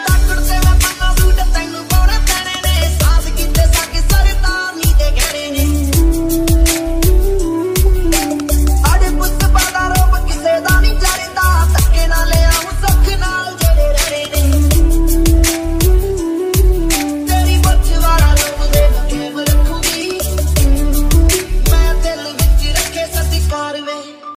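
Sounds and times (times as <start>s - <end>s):
Punjabi remix ringtone music: 0.0s - 24.3s.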